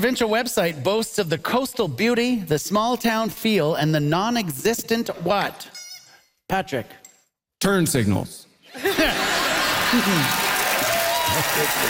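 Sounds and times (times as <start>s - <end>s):
speech: 0.0s - 5.8s, 6.5s - 7.0s, 7.6s - 10.4s, 11.3s - 11.8s
scattered laughter: 8.8s - 10.6s
studio audience applauding: 9.2s - 11.8s
voices cheering: 9.5s - 11.8s.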